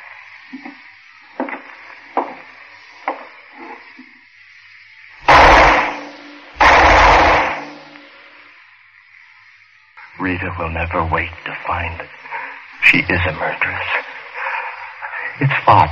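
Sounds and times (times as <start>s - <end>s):
quiet hiss: 0.0s - 15.9s
gunshots: 5.3s - 8.0s
speech: 10.2s - 12.3s, 12.9s - 14.1s, 15.4s - 15.9s.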